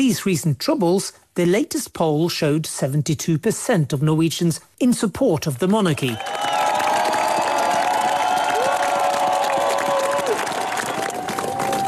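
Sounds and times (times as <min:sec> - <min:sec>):
speech: 0:00.0 - 0:06.5
large crowd in Oslo cheering: 0:06.1 - 0:11.8.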